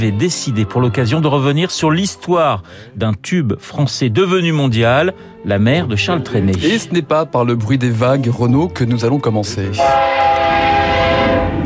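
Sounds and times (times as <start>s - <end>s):
speech: 0.0s - 10.5s
train rumbling past: 9.8s - 11.6s.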